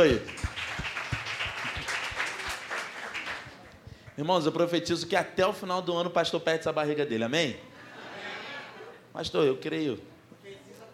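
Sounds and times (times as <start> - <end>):
speech: 0.0 - 0.4, 4.2 - 7.7, 9.2 - 10.1
audience applause: 0.0 - 3.8.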